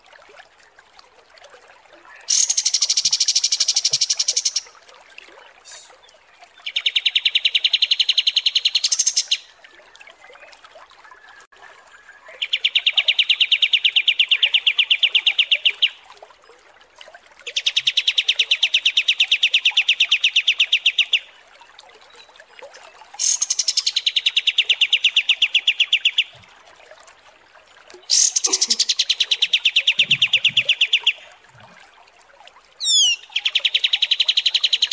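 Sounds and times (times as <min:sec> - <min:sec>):
kapas tembak trilling song: 0:02.3 - 0:04.7, 0:06.6 - 0:09.5, 0:12.3 - 0:16.0, 0:17.5 - 0:21.3, 0:23.2 - 0:26.4, 0:28.1 - 0:31.3, 0:32.8 - 0:34.9.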